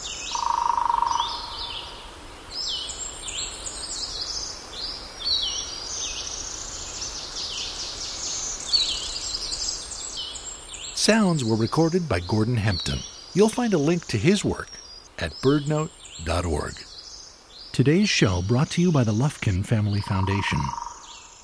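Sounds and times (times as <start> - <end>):
woodpeckers drumming: 0.0 - 1.8, 11.0 - 17.0, 17.7 - 21.3
warblers and vireos singing: 0.0 - 21.4
speech: 11.0 - 16.9, 17.8 - 20.8.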